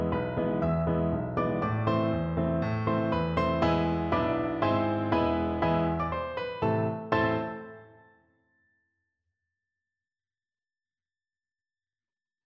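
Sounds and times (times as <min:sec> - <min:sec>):
piano duet: 0:00.0 - 0:08.2.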